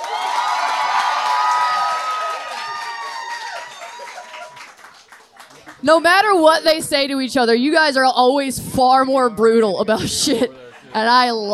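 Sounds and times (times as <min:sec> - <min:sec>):
people clapping: 0:00.0 - 0:06.4
speech: 0:05.8 - 0:11.5
laughter: 0:09.8 - 0:11.5.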